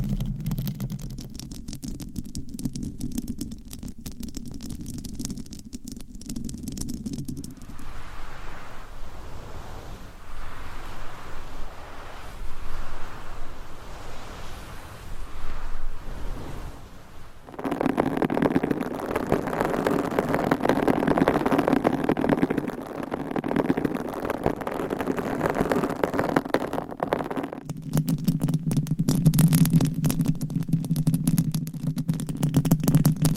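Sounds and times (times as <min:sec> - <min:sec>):
low buzzing hum with crackly ticks: 0:00.0 - 0:33.3
soft rustly scratching: 0:06.2 - 0:27.6
rubbing: 0:06.5 - 0:27.6
steady dull rumble: 0:06.9 - 0:27.6.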